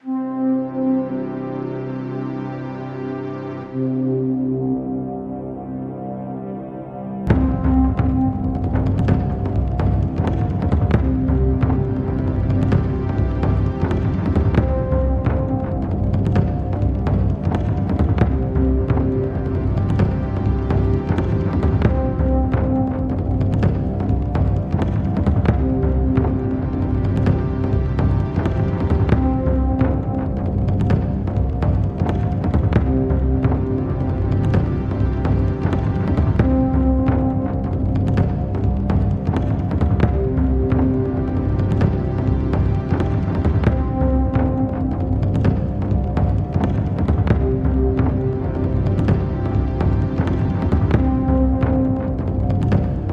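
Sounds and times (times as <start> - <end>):
flute: 0.0 - 53.1
funk electronica: 0.0 - 53.1
taiko drums: 7.3 - 53.1.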